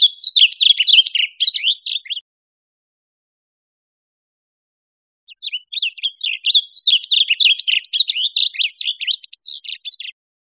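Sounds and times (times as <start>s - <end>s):
Blue grosbeak singing warbled song: 0.0s - 2.2s, 5.3s - 10.2s.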